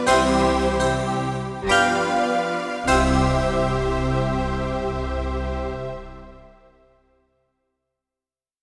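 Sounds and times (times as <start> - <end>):
silent synth pad: 0.1 - 6.9.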